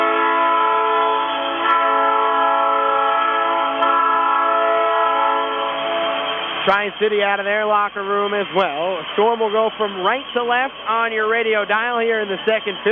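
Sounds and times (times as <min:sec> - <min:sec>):
hockey arena goal horn blaring: 0:00.0 - 0:06.5
speech: 0:06.6 - 0:12.9.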